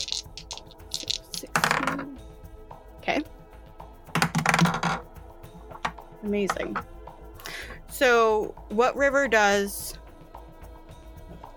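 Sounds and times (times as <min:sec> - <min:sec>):
dice rolling on a hard tabletop: 0:00.0 - 0:02.1, 0:04.2 - 0:05.0
speech: 0:06.2 - 0:06.9, 0:08.0 - 0:09.8.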